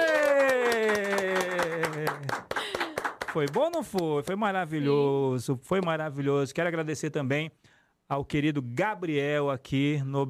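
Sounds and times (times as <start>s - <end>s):
team clapping: 0.0s - 4.6s
speech: 3.4s - 10.2s.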